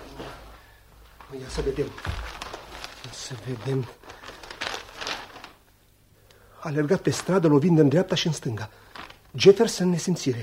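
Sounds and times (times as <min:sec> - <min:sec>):
speech: 0:01.3 - 0:02.3, 0:03.0 - 0:04.1, 0:06.6 - 0:10.4
newspaper pages rustling: 0:01.3 - 0:05.6, 0:07.0 - 0:07.6, 0:08.8 - 0:09.8.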